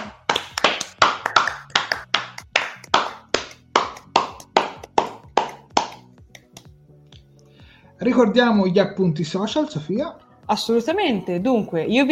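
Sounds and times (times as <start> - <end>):
steady evenly spaced applause: 0.0 - 6.8
speech: 8.0 - 12.0.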